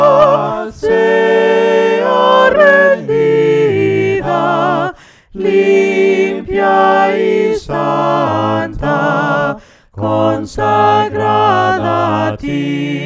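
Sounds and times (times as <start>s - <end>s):
people singing hymns a cappella: 0.0s - 13.0s.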